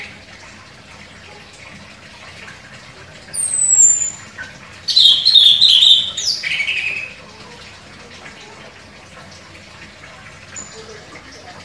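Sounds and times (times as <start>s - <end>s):
orange-headed thrush singing vigorously with whistled phrases and chirps: 3.4s - 4.3s, 4.9s - 7.2s.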